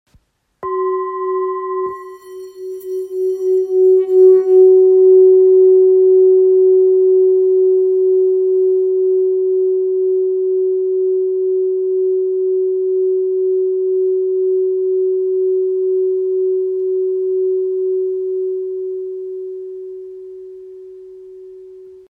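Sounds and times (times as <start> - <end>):
old bowl in F sharp: 0.6 - 22.0.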